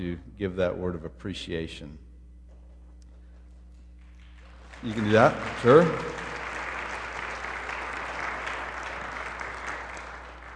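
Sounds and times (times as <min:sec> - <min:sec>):
speech: 0:00.0 - 0:02.1, 0:04.8 - 0:06.2
audience applause: 0:04.2 - 0:10.5.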